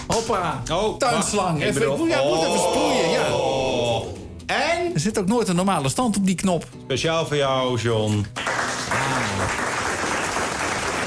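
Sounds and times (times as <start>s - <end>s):
speech: 0.2s - 8.5s
applause: 8.3s - 11.0s.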